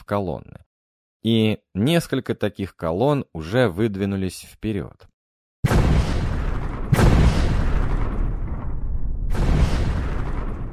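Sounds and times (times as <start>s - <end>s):
speech: 0.1s - 0.6s, 1.2s - 5.1s
loud explosions of fougasse powder charges: 5.6s - 10.7s.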